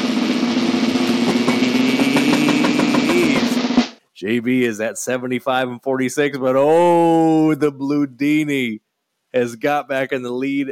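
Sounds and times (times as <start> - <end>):
drum roll sound effect: 0.0 - 4.0
speech: 4.2 - 10.7.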